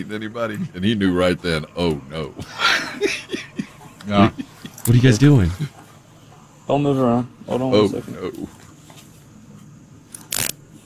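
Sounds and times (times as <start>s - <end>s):
speech: 0.0s - 3.4s, 4.0s - 5.8s, 6.7s - 8.6s
laughter: 0.0s - 6.1s, 7.4s - 8.7s
quiet hiss: 0.0s - 10.8s
handcuffs clicking shut during a police stop: 10.1s - 10.6s.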